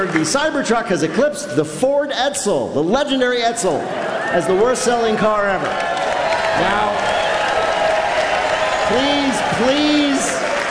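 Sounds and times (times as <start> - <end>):
audience clapping: 0.0 - 1.2, 3.9 - 10.6
speech: 0.0 - 5.9, 6.6 - 7.2, 8.9 - 10.3.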